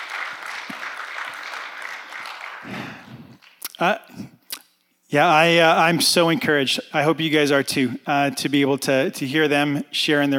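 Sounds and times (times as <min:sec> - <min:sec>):
audience applause: 0:00.0 - 0:03.6
speech: 0:03.8 - 0:04.2, 0:05.1 - 0:10.3.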